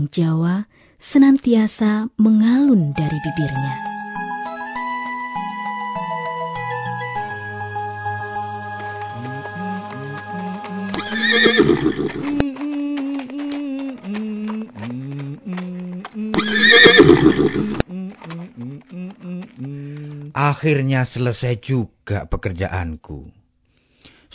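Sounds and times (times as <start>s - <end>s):
speech: 0.0s - 3.9s, 11.4s - 12.4s, 17.2s - 17.8s, 20.4s - 23.4s
hooves clopping: 5.5s - 21.3s
horses neighing: 9.2s - 20.3s.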